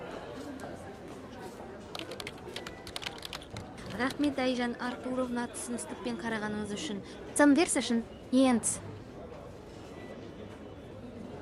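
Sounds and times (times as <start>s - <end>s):
low noise: 0.0s - 11.3s
typing on a computer keyboard: 1.9s - 4.4s
speech: 4.0s - 8.9s.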